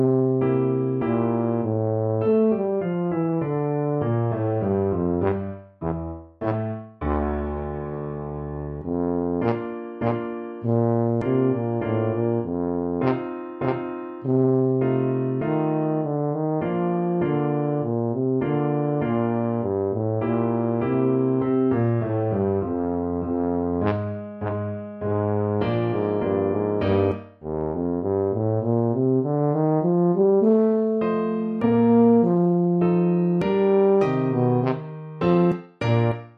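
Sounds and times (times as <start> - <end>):
tuba playing a classical piece: 0.0 - 36.3.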